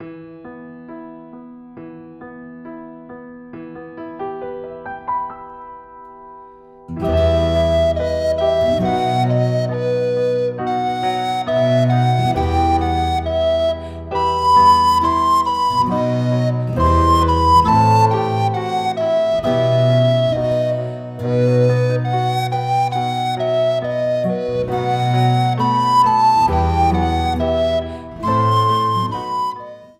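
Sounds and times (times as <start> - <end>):
minor key music: 6.9 - 29.9.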